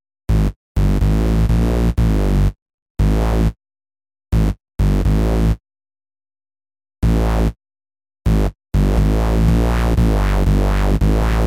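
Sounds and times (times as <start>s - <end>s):
dance portasynth bass on GR-55: 0.3s - 3.6s, 4.4s - 5.6s, 7.0s - 7.6s, 8.3s - 11.4s.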